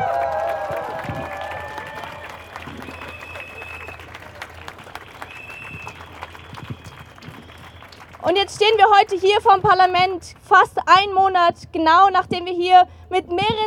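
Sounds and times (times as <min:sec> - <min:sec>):
rally crowd applause and cheering after a speech: 0:00.0 - 0:08.8
whistle-like tones: 0:02.0 - 0:08.2
speech: 0:08.3 - 0:13.6.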